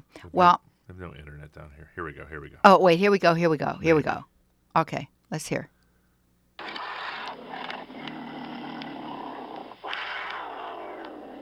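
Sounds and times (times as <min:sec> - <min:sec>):
speech: 0:00.2 - 0:05.8
mountain lion: 0:06.6 - 0:11.4.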